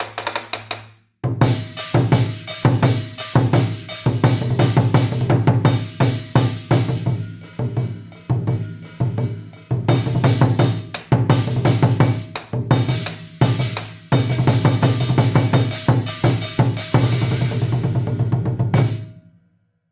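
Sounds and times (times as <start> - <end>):
lion dance music ringtone: 0.0 - 19.2.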